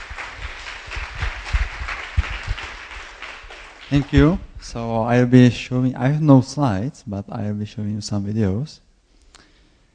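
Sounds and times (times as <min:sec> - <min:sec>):
audience applause: 0:00.0 - 0:04.4
speech: 0:03.9 - 0:08.8.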